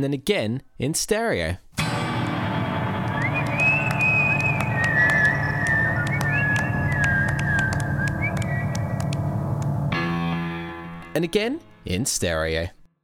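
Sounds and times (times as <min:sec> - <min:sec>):
speech: 0:00.0 - 0:02.0, 0:11.2 - 0:12.8
whistling: 0:02.6 - 0:09.6
clapping: 0:02.6 - 0:09.8.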